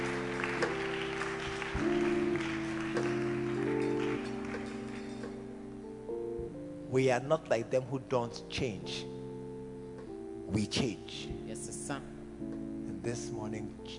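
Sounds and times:
audience clapping: 0.0 - 5.5
sustained organ-like chords: 0.0 - 13.9
speech: 6.9 - 9.1, 10.5 - 13.9.

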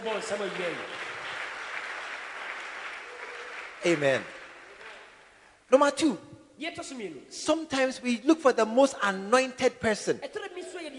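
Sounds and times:
speech: 0.0 - 1.1, 3.8 - 4.4, 5.7 - 10.9
audience clapping: 0.0 - 5.4.

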